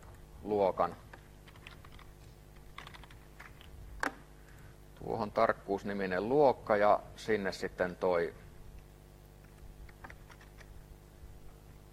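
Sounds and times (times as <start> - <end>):
speech: 0.4 - 1.1, 5.0 - 8.4
typing code on a computer keyboard: 1.4 - 2.1, 2.7 - 3.6, 9.9 - 10.7.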